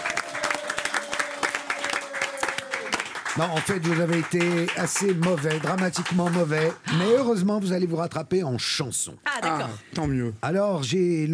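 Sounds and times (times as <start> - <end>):
applause from a small group: 0.0 - 7.1
speech: 3.4 - 11.3.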